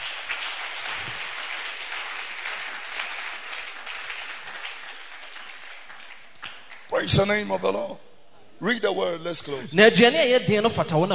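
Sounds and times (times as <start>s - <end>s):
audience clapping hands: 0.0s - 7.4s
speech: 7.0s - 11.1s.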